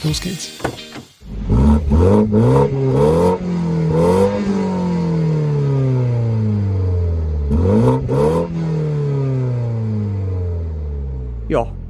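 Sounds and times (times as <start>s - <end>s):
speech: 0.0s - 1.1s, 1.8s - 4.6s, 11.5s - 11.8s
BMW 128 Ti four-cylinder engine revving through gear changes: 1.1s - 11.8s.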